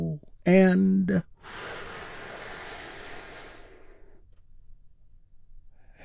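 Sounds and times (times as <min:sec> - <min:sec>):
speech: 0:00.4 - 0:01.8
deep breath taken as a relaxation exercise: 0:01.3 - 0:04.3.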